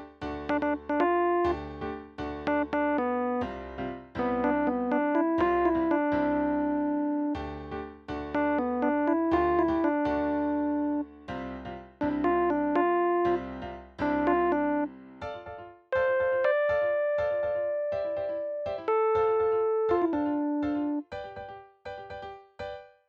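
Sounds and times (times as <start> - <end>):
melody: 0.5 - 1.6, 2.5 - 3.5, 4.1 - 7.4, 8.3 - 11.1, 12.0 - 14.9, 15.9 - 21.1.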